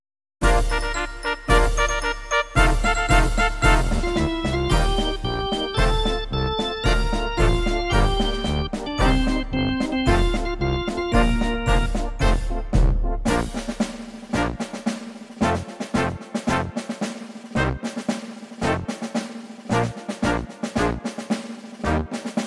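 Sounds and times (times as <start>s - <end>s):
instrumental music: 0.4s - 22.4s.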